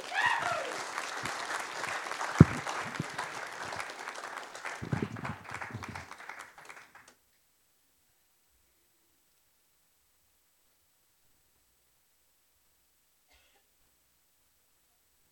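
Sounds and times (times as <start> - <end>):
audience applause: 0.0 - 7.1.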